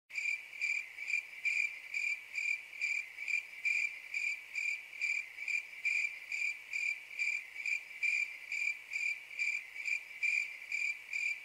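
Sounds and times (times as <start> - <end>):
crickets chirping: 0.2 - 11.4.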